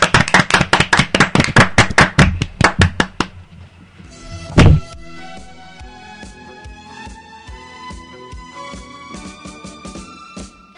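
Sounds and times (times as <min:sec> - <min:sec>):
group of children applauding: 0:00.0 - 0:03.2.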